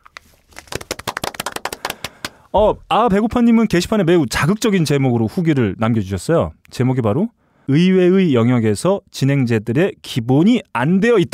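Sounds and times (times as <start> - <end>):
applause: 0.5 - 2.4
speech: 2.5 - 11.3.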